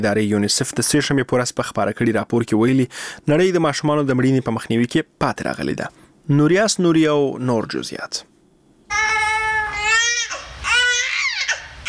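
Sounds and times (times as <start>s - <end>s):
speech: 0.0s - 8.3s
infant babbling and crying: 8.9s - 11.8s.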